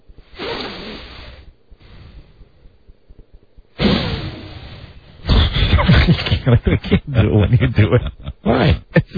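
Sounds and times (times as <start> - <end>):
heavy breathing through the nose: 0.2 - 2.8, 3.8 - 5.8
laughter: 5.3 - 9.1
speech: 6.1 - 9.1.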